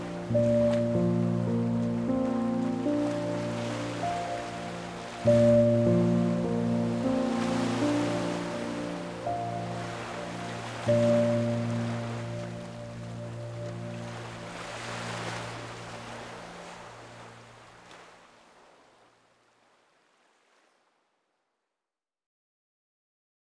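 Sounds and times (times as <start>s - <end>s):
piano music for deep baby sleep: 0.0s - 17.4s
beach waves: 0.0s - 20.8s.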